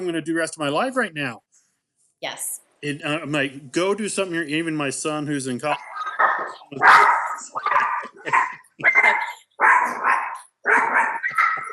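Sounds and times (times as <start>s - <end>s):
speech: 0.0s - 1.5s, 2.2s - 9.3s
dog barking: 5.8s - 11.7s.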